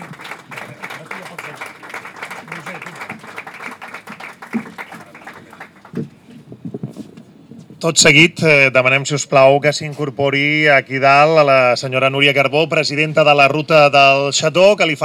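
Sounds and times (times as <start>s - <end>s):
loud applause: 0.0s - 6.1s
speech: 7.8s - 15.0s.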